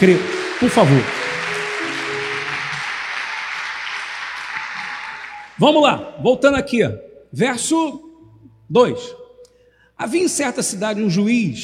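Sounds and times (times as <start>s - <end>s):
speech: 0.0s - 1.2s, 5.6s - 8.1s, 8.7s - 9.2s, 10.0s - 11.6s
audience applause: 0.0s - 5.6s.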